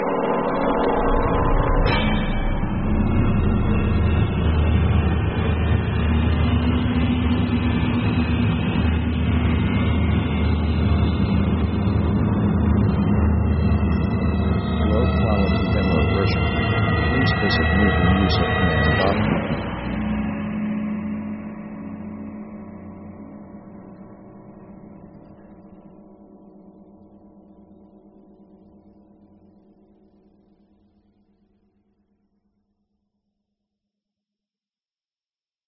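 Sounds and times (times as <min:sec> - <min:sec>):
orchestral horror music: 0:00.0 - 0:26.0.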